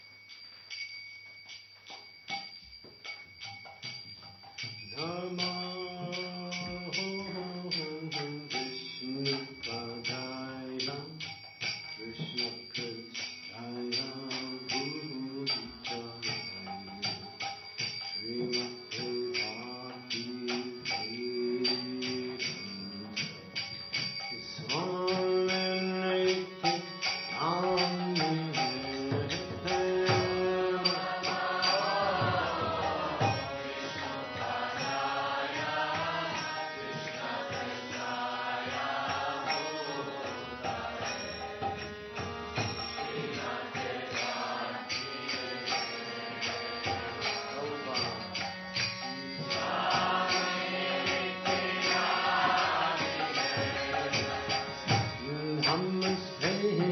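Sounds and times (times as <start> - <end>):
kirtan devotional chanting: 2.0 - 56.8.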